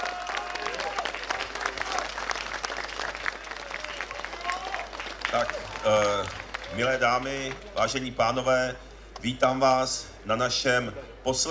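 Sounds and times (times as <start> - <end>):
big audience applause: 0.0 - 7.8
speech: 5.3 - 11.5.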